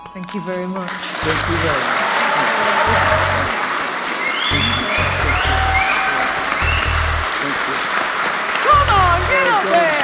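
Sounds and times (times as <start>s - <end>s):
speech: 0.2s - 2.0s, 2.6s - 3.6s
Manchester audience applause for John Irving: 0.8s - 10.0s
audience whistles: 4.2s - 7.0s.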